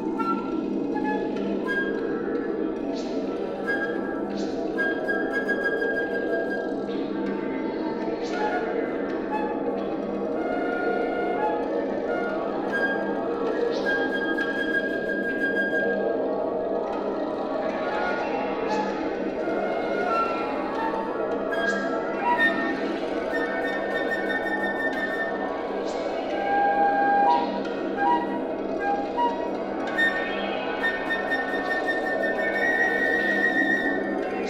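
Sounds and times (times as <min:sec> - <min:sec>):
flute music on magnetic tape: 0:00.0 - 0:34.4.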